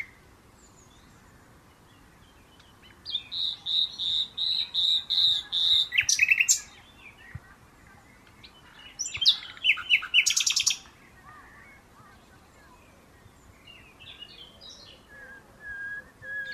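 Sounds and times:
common nightingale Luscinia megarhynchos singing with rattling trills: 0.0 - 16.5.

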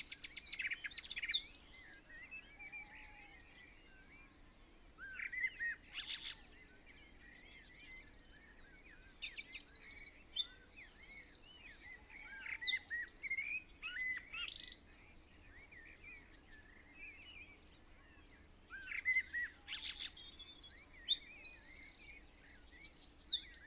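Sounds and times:
Eurasian wren song: 0.0 - 3.6, 7.1 - 14.9, 18.7 - 23.6
soft chirps of other birds: 0.0 - 23.6.

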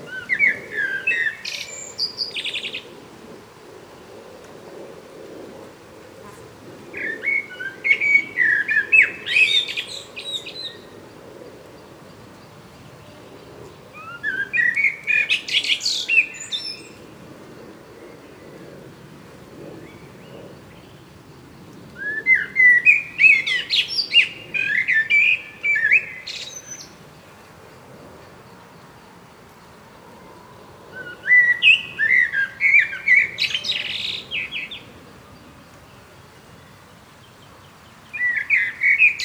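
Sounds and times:
common blackbird song: 0.0 - 2.9, 7.0 - 11.0, 11.8 - 17.1, 22.0 - 27.5, 31.0 - 39.2.

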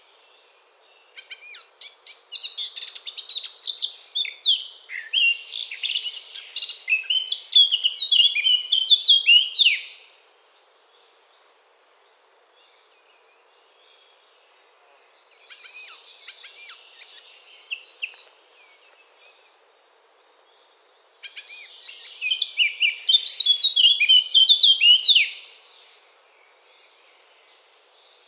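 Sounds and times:
faint hiss: 0.0 - 28.2
Eurasian blackcap song: 1.0 - 10.0, 15.2 - 19.4, 21.2 - 26.0.

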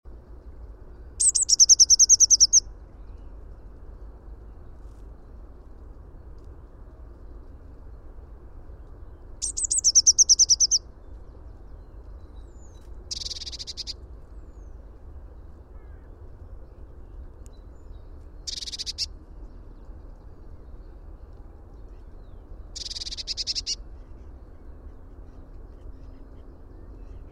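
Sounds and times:
steady low rumble: 0.1 - 27.3
Eurasian blue tit trilling: 1.2 - 2.6, 9.4 - 10.8, 13.1 - 14.0, 18.5 - 19.1, 22.8 - 23.8.

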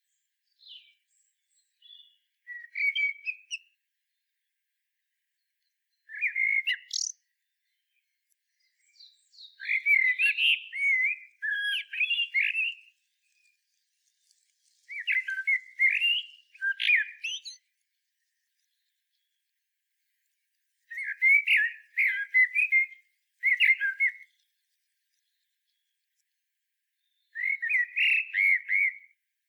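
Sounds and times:
common blackbird singing: 0.1 - 3.8, 6.0 - 13.4, 14.8 - 17.7, 20.9 - 24.4, 27.0 - 29.2.

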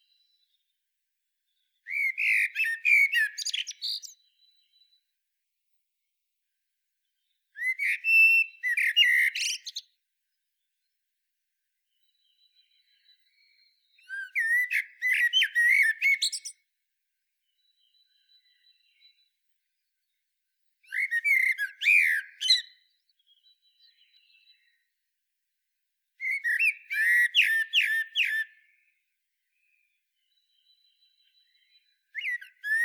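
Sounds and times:
Eurasian blackbird singing: 1.6 - 4.9, 7.6 - 9.9, 11.9 - 16.6, 20.8 - 24.9, 26.2 - 29.0, 29.6 - 32.8.

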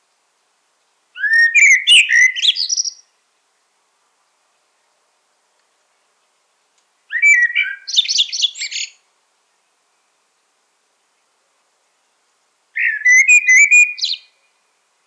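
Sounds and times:
common blackbird singing: 1.2 - 3.1, 7.1 - 9.0, 12.8 - 14.4.

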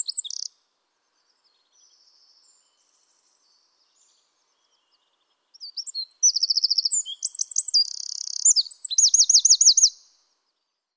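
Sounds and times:
Eurasian wren singing very high rapid trills: 0.0 - 0.5, 3.9 - 10.2.

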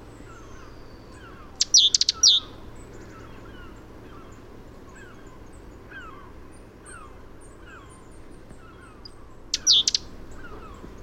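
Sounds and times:
great tit Parus major calling high clipped chirps: 0.3 - 3.3, 8.8 - 10.8.

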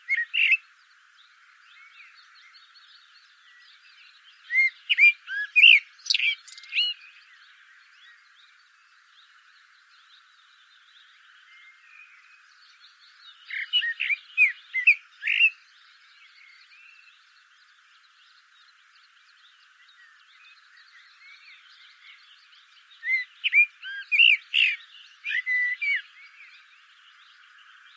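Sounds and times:
common blackbird song: 0.0 - 27.9
faint twitter: 0.0 - 27.9.

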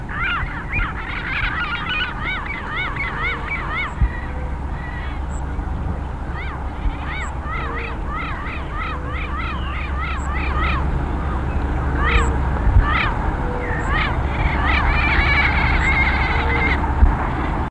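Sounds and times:
bird honking calls: 0.0 - 17.6
steady low rumbling background: 0.0 - 17.6.

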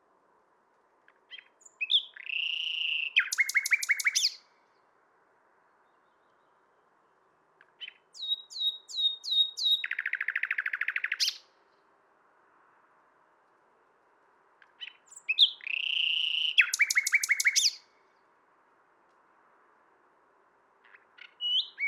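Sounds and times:
common nightingale singing: 1.2 - 4.5, 7.6 - 11.5, 14.6 - 18.0, 20.8 - 21.8.

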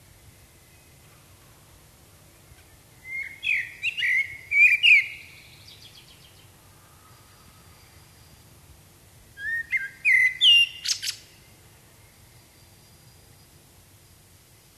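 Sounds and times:
common blackbird singing: 2.6 - 6.5, 9.4 - 11.4.

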